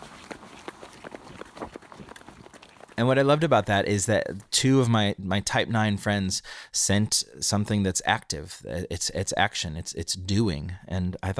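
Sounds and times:
person running footsteps: 0:00.0 - 0:03.4
speech: 0:03.0 - 0:11.3.

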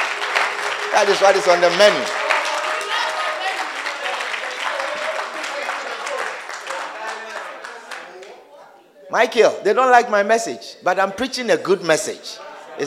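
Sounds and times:
large group clapping hands: 0:00.0 - 0:08.5
crowd voices: 0:00.0 - 0:09.0
speech: 0:01.0 - 0:02.2, 0:09.1 - 0:12.8.

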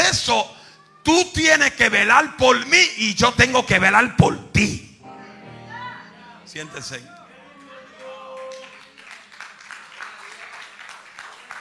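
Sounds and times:
speech: 0:00.3 - 0:04.9, 0:06.5 - 0:07.2
audience applause: 0:07.6 - 0:11.5.

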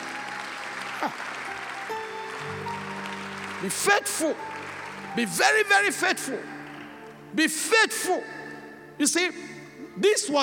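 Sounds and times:
audience applause: 0:00.0 - 0:07.3
speech: 0:01.0 - 0:01.3, 0:03.6 - 0:06.5, 0:07.3 - 0:08.4, 0:09.0 - 0:10.4.

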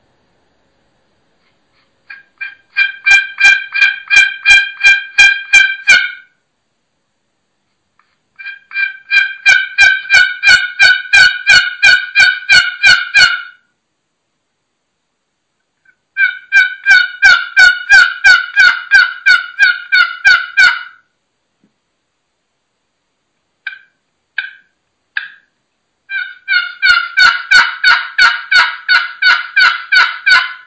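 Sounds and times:
turkey yelps worked on a one-sided box call: 0:02.1 - 0:06.4, 0:08.4 - 0:13.6, 0:16.2 - 0:21.1, 0:23.6 - 0:25.5, 0:26.1 - 0:30.6.

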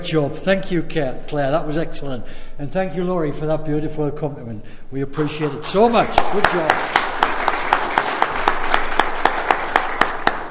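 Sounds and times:
speech: 0:00.0 - 0:07.0
audience applause: 0:05.4 - 0:10.4.

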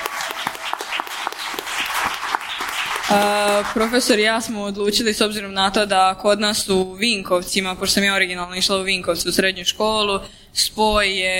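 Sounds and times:
audience applause at a gathering in Vinkovci: 0:00.0 - 0:04.2
speech: 0:03.1 - 0:11.3.

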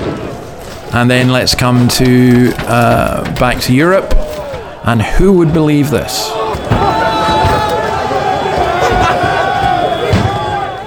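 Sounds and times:
Dutch rioters clashing with police in the street: 0:00.0 - 0:10.8
speech: 0:00.9 - 0:04.2, 0:04.8 - 0:06.4
laughter: 0:06.2 - 0:10.8.

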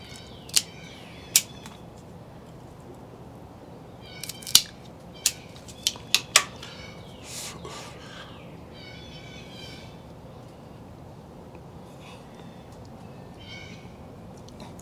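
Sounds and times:
quiet hiss: 0:00.0 - 0:14.8
cutting the cap off a Casa Cuevas Sangre Nueva Toro cigar: 0:00.2 - 0:01.8, 0:04.2 - 0:06.8.

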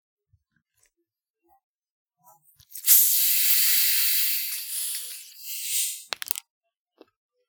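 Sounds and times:
drink can cracking open and fizzing: 0:02.6 - 0:06.4.

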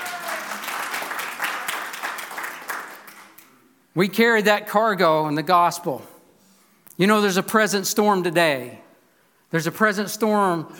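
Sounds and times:
large group clapping in sustained applause: 0:00.0 - 0:03.6
speech: 0:04.0 - 0:06.1, 0:07.0 - 0:08.8, 0:09.5 - 0:10.7.

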